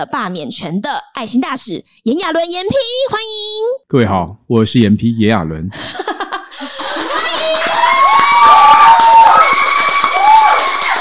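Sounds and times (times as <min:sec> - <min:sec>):
speech: 0:00.0 - 0:06.0
laughter: 0:05.7 - 0:07.6
live studio audience applauding: 0:06.5 - 0:11.0.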